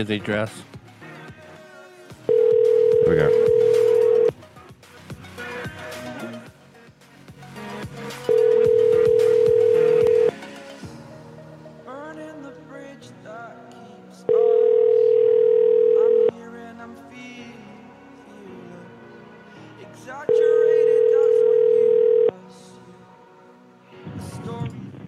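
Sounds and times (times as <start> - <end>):
speech: 0.0 - 0.7, 3.1 - 3.5
ringing tone on an AT&T phone call: 2.3 - 4.4, 8.3 - 10.4, 14.3 - 16.3, 20.3 - 22.3.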